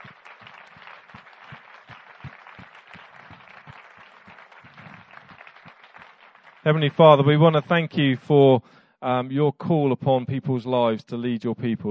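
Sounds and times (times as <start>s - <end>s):
audience round of applause: 0.0s - 8.1s
speech: 6.6s - 11.8s.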